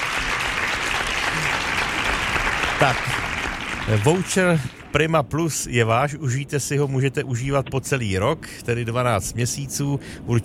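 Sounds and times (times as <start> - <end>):
applause: 0.0 - 5.2
speech: 2.8 - 3.1, 3.9 - 10.4.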